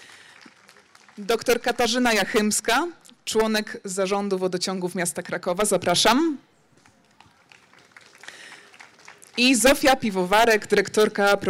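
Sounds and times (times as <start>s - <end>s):
audience applause welcoming a panelist: 0.0s - 1.2s, 6.8s - 9.9s
speech: 1.2s - 6.5s, 9.4s - 11.4s.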